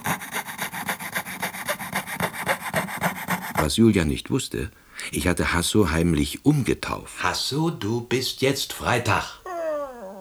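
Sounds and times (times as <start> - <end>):
fretsaw sawing wood: 0.0 - 3.8
speech: 3.6 - 9.4.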